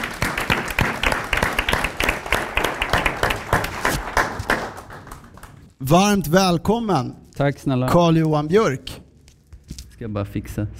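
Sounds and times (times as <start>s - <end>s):
audience applause: 0.0s - 5.7s
speech: 5.8s - 9.0s, 10.0s - 10.7s.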